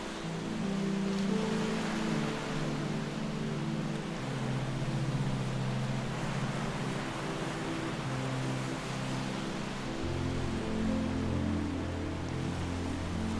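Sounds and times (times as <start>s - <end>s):
ocean water washing on a tropical island shore: 0.0s - 13.3s
relaxing music with low sustained tones: 0.0s - 13.3s.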